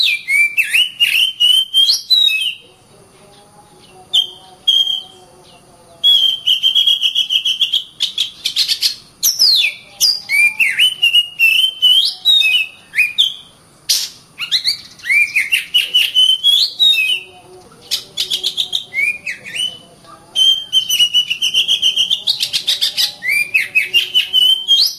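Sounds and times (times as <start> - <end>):
Oriental magpie-robin song: 0.0 - 24.9.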